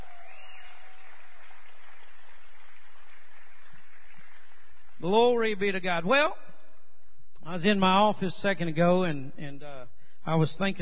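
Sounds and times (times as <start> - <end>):
audience clapping hands: 0.0 - 5.6
speech: 5.0 - 6.4, 7.4 - 10.8.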